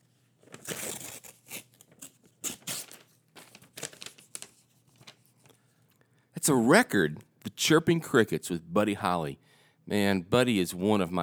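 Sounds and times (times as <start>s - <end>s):
gift wrapping paper being torn open: 0.4s - 5.3s
speech: 6.4s - 11.2s.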